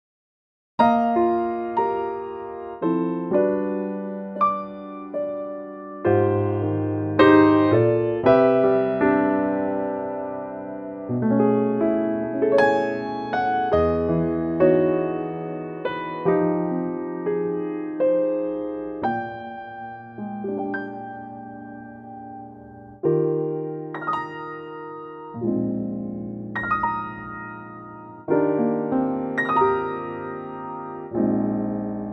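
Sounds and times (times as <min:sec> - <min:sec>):
electric piano: 0:00.8 - 0:32.1.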